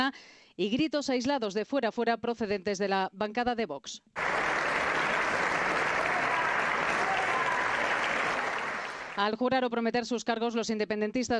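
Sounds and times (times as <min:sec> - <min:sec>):
speech: 0:00.0 - 0:04.3, 0:09.2 - 0:11.3
applause from parliament members: 0:04.2 - 0:09.2.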